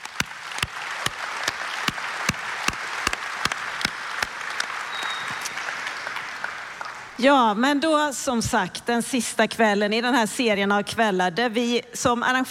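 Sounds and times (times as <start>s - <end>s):
audience applause: 0.0s - 7.2s
speech: 7.2s - 12.4s.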